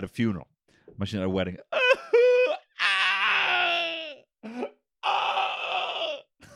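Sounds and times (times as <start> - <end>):
speech: 0.0 - 1.7, 4.4 - 4.8
person keening wail of mourning: 1.7 - 6.5.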